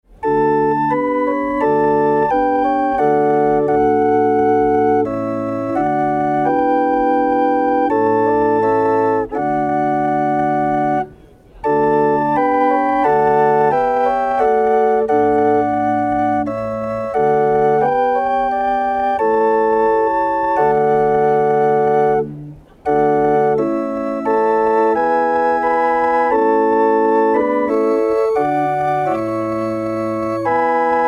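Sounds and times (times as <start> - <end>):
hurdy-gurdy: 0.2 - 31.0.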